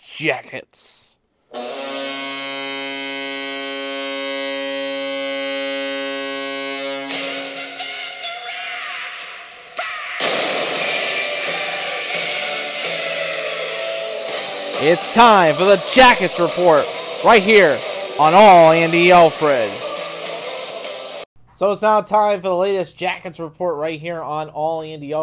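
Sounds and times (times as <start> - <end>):
speech: 0.2 - 1.8, 14.8 - 19.8, 21.6 - 25.2
cannon firing sound effect: 10.2 - 11.8.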